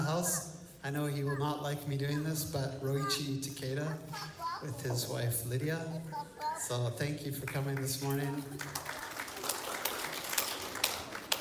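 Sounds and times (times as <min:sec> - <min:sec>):
speech: 0:00.2 - 0:09.0
audience applause: 0:07.4 - 0:11.3.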